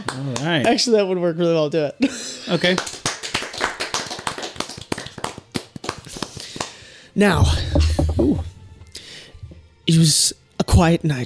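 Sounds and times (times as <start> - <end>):
hand clap as sync marker: 0.0 - 0.9, 2.6 - 7.0
speech: 0.1 - 3.0, 7.2 - 8.5, 9.9 - 11.2.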